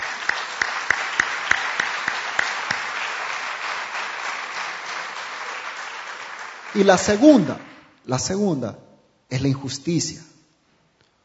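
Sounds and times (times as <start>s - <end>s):
audience applause: 0.0s - 7.8s
speech: 6.8s - 10.3s.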